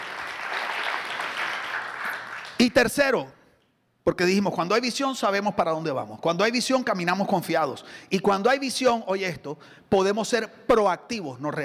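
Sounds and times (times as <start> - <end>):
audience applause: 0.0 - 2.6
speech: 2.6 - 3.4, 4.0 - 11.6.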